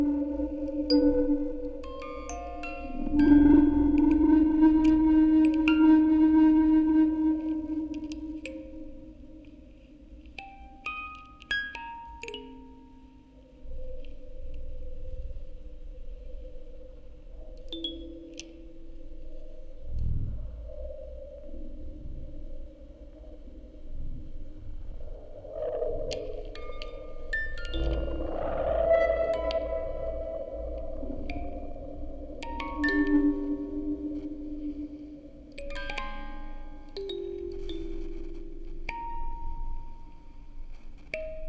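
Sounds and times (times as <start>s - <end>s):
music box quartet: 0.0s - 5.6s, 10.2s - 13.4s, 26.6s - 41.4s
field recording ambience: 0.0s - 41.4s.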